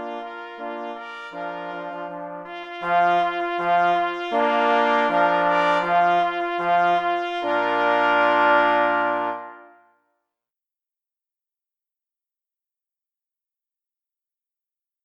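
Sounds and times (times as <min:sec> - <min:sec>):
march: 0:00.0 - 0:09.7.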